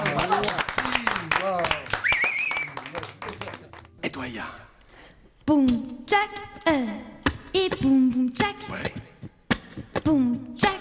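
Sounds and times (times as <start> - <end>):
audience applauding: 0.0 - 3.9
speech: 4.3 - 4.6, 5.5 - 9.1, 10.0 - 10.8.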